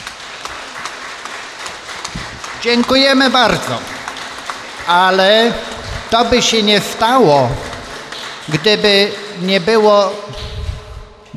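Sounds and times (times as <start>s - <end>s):
audience applause at a Polish history event: 0.0s - 11.3s
speech: 2.6s - 3.9s, 4.8s - 7.7s, 8.5s - 10.4s.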